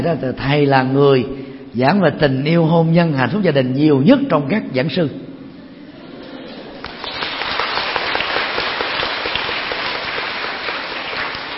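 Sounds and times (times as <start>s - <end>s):
speech: 0.0s - 5.3s
audience applause: 6.8s - 11.5s.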